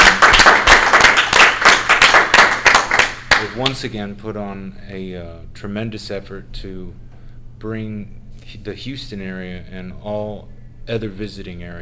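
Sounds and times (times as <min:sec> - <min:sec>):
loud applause at a Houston-area convention for the convention committee: 0:00.0 - 0:03.8
speech: 0:03.6 - 0:07.0, 0:07.6 - 0:11.8.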